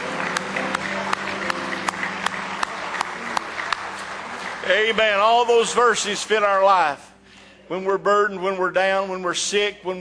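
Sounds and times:
audience hand clapping: 0:00.0 - 0:06.9
speech: 0:04.7 - 0:07.1, 0:07.7 - 0:09.9.

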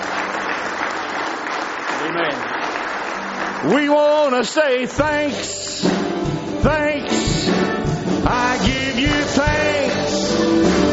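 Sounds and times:
crowd clapping: 0:00.0 - 0:06.1, 0:09.0 - 0:10.9
speech: 0:02.1 - 0:02.6, 0:03.6 - 0:06.0, 0:06.6 - 0:07.3, 0:08.2 - 0:10.9.

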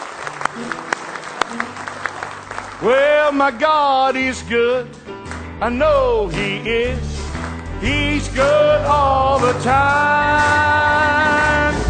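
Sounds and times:
church congregation clapping in praise: 0:00.0 - 0:03.8, 0:05.2 - 0:05.5, 0:08.3 - 0:11.8
speech: 0:02.8 - 0:05.0, 0:05.6 - 0:07.1, 0:07.8 - 0:11.4.

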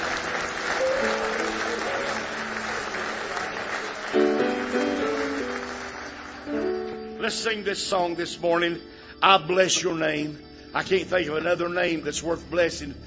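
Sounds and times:
church audience applause: 0:00.0 - 0:07.0
keyboard chords: 0:00.0 - 0:13.0
speech: 0:07.3 - 0:13.0.

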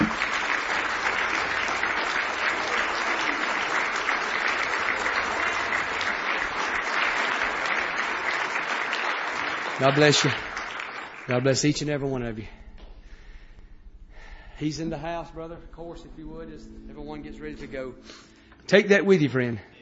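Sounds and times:
large crowd applauding with hand claps: 0:00.0 - 0:12.0
speech: 0:09.8 - 0:10.5, 0:11.3 - 0:12.6, 0:14.6 - 0:19.7.

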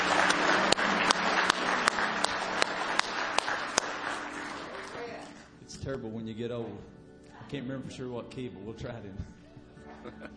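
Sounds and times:
sharper evenly spaced louder claps keeping a beat: 0:00.0 - 0:05.0
crowd applauding: 0:00.0 - 0:05.5
speech: 0:06.0 - 0:09.4, 0:10.0 - 0:10.3.

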